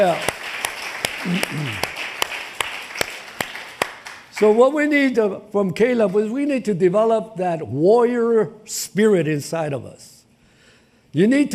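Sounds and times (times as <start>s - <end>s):
speech: 0.0s - 0.3s, 1.2s - 1.9s, 4.4s - 10.1s, 11.1s - 11.5s
audience clapping: 0.0s - 5.1s.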